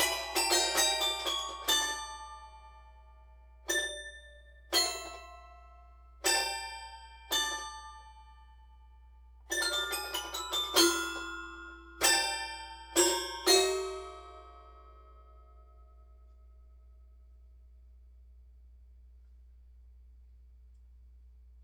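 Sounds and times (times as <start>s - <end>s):
toy piano: 0.0s - 8.5s, 9.5s - 15.1s.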